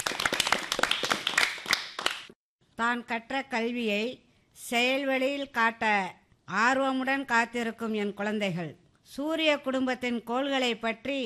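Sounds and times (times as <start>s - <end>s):
small group clapping at a school event: 0.0s - 2.4s
speech: 2.8s - 11.2s.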